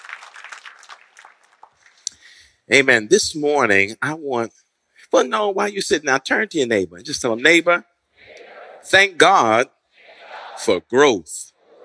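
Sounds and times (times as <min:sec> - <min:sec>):
audience hand clapping: 0:00.0 - 0:02.1
speech: 0:02.7 - 0:07.9, 0:08.9 - 0:09.8, 0:10.6 - 0:11.5.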